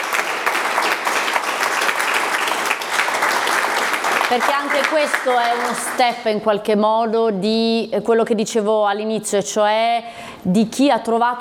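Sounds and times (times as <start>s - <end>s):
audience applause: 0.0s - 6.2s
speech: 4.3s - 11.3s.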